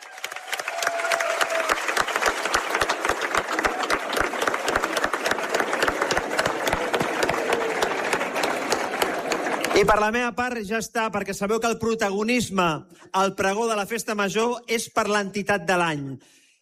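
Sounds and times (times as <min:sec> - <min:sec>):
crowd applause: 0:00.0 - 0:10.1
speech: 0:09.8 - 0:16.4.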